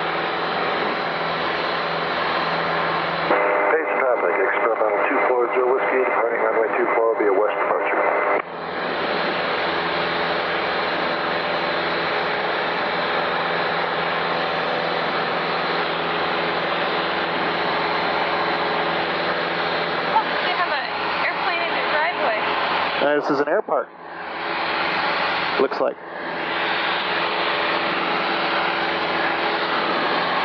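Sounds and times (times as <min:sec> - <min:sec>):
Piper Cherokee light aircraft engine droning in flight: 0:00.0 - 0:30.4
tinny radio-like voice: 0:03.3 - 0:08.4, 0:23.0 - 0:23.9, 0:25.6 - 0:26.0
speech: 0:05.5 - 0:07.4, 0:23.2 - 0:24.0, 0:25.6 - 0:26.1.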